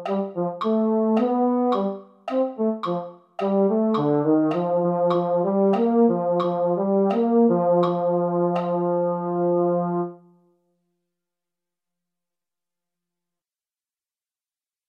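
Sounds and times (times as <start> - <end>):
baritone horns playing holiday brass music: 0.0 - 10.2.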